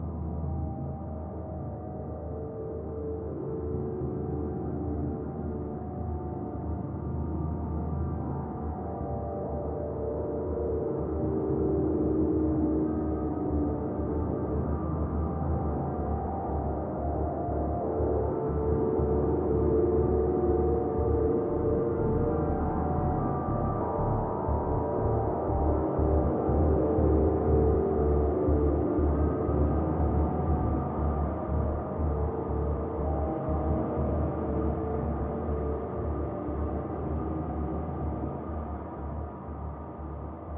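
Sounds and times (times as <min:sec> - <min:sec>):
drone in D: 0:00.1 - 0:40.5.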